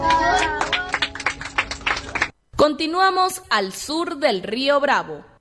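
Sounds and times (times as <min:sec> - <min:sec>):
audience applause: 0:00.0 - 0:02.4
speech: 0:02.6 - 0:05.3.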